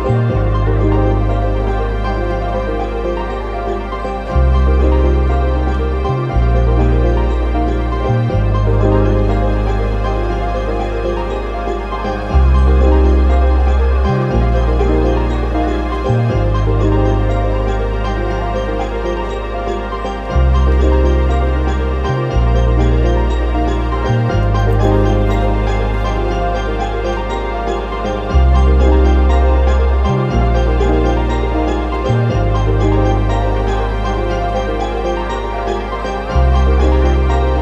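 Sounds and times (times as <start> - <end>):
ambient music: 0.0 - 37.6.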